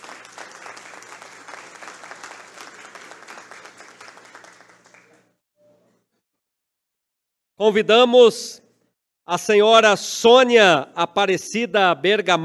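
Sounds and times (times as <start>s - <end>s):
audience applause: 0.0s - 5.4s
speech: 7.6s - 8.6s, 9.3s - 12.4s.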